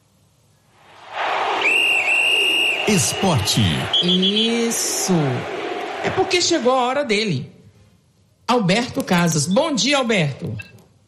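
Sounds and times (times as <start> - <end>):
crowd noise: 0.9 - 7.2
radio whistle signal: 1.6 - 4.8
speech: 2.9 - 7.6, 8.5 - 10.8.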